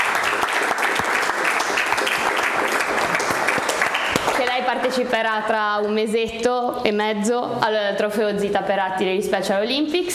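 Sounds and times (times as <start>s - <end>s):
applause: 0.0s - 4.6s
speech: 4.8s - 10.1s.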